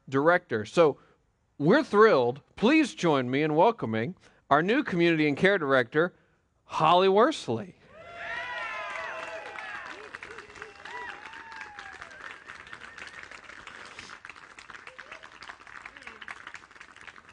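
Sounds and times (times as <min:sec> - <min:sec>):
speech: 0:00.1 - 0:07.8
voices whooping and cheering: 0:07.9 - 0:16.6
crowd applauding: 0:08.1 - 0:17.3.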